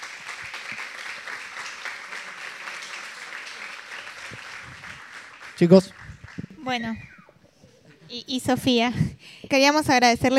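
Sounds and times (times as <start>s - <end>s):
audience applause: 0.0s - 7.2s
speech: 5.6s - 6.0s, 6.6s - 7.1s, 8.1s - 10.3s.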